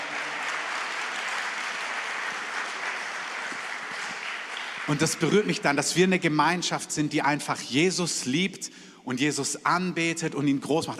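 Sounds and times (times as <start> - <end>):
audience applause: 0.0 - 5.6
speech: 4.9 - 10.9.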